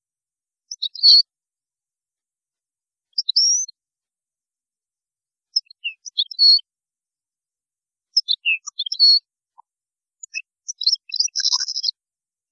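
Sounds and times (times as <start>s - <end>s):
European goldfinch singing: 0.7s - 1.2s, 3.2s - 3.7s, 5.6s - 6.6s, 8.2s - 9.2s, 10.2s - 12.0s.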